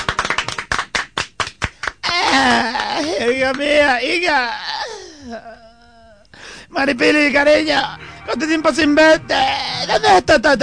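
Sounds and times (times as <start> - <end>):
applause: 0.0 - 3.7
speech: 2.4 - 4.6, 5.2 - 5.6, 6.7 - 10.6.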